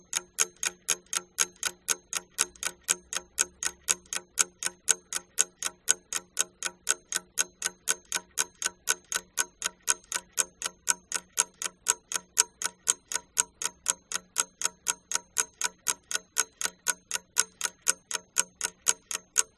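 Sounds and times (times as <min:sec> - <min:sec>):
alarm clock ticking: 0:00.0 - 0:19.5.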